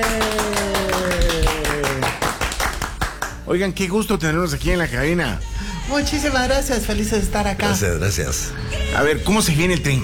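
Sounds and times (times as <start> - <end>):
applause in studio: 0.0 - 3.4
speech: 3.5 - 10.0.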